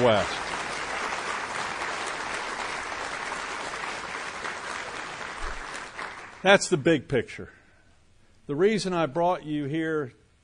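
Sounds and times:
speech: 0.0 - 0.5, 6.4 - 7.6, 8.5 - 10.2
audience applause: 0.0 - 6.7.

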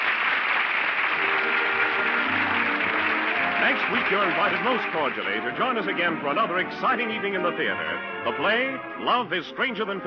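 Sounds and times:
theater audience applause: 0.0 - 6.6
speech: 3.7 - 10.0.

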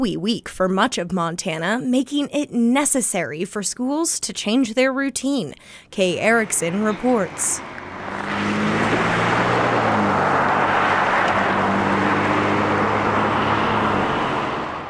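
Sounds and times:
speech: 0.0 - 9.1
traffic at Colton Boulevard and 19th Street West in Billings Montana: 6.2 - 14.8.

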